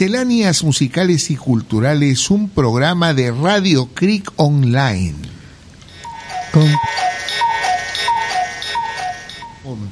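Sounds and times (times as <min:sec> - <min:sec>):
speech: 0:00.0 - 0:05.3, 0:06.5 - 0:07.1, 0:09.7 - 0:09.9
cuckoo clock ticking: 0:05.9 - 0:09.6.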